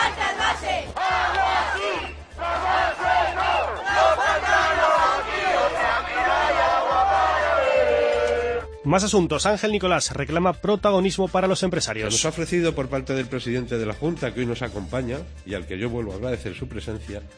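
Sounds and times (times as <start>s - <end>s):
protest crowd chanting in Guadalajara, Spain: 0.0s - 8.6s
speech: 8.9s - 17.3s.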